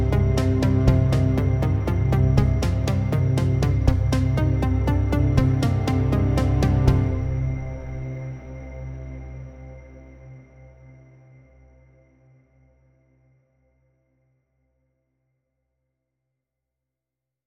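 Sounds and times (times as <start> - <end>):
fast drone: 0.0 - 8.4.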